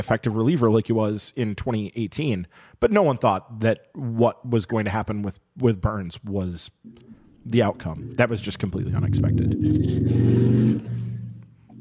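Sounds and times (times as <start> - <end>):
speech: 0.0 - 11.0
motorcycle engine revving and taking off: 7.8 - 11.6.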